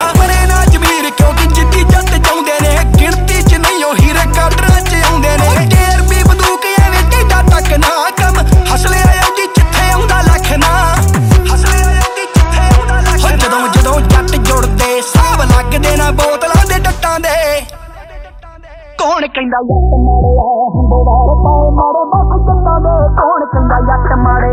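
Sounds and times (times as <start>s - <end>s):
Desi Punjabi ringtone music: 0.0s - 17.7s, 19.6s - 24.5s.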